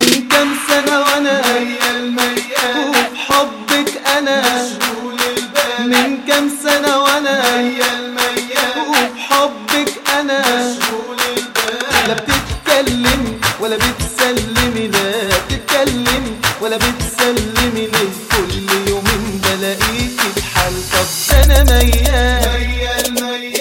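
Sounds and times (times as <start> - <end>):
Arab remix music: 0.0 - 23.5.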